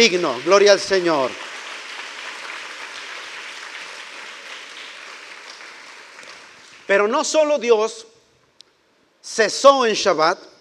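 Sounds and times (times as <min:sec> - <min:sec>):
speech: 0:00.0 - 0:01.5, 0:06.9 - 0:08.1, 0:09.2 - 0:10.5
audience applause: 0:00.0 - 0:07.1.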